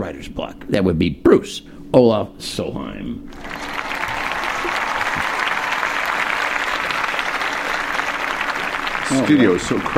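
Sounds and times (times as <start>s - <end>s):
speech: 0.0s - 3.6s, 9.1s - 9.9s
studio audience applause: 3.3s - 9.9s.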